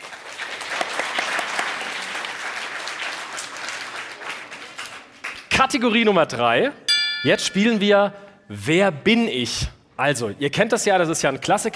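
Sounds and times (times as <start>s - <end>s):
audience applause: 0.0s - 5.4s
speech: 5.6s - 11.7s.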